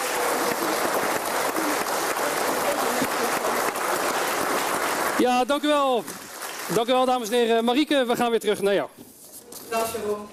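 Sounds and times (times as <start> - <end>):
audience applause: 0.0 - 7.8
speech: 5.2 - 9.0, 9.7 - 10.3.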